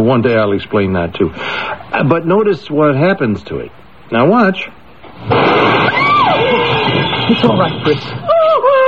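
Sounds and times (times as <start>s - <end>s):
speech: 0.0s - 5.8s, 7.3s - 8.3s
glass blown up and shattering: 5.2s - 8.2s.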